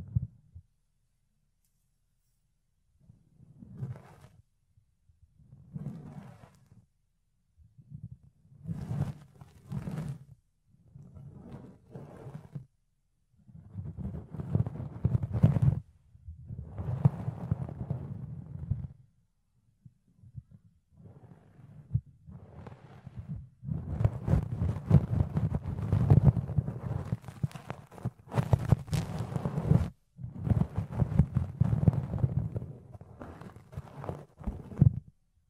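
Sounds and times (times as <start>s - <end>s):
fluffy ear cleaning rubbing and scratching: 3.0s - 4.4s, 5.4s - 6.9s, 7.8s - 12.7s, 13.4s - 19.0s, 20.0s - 35.2s.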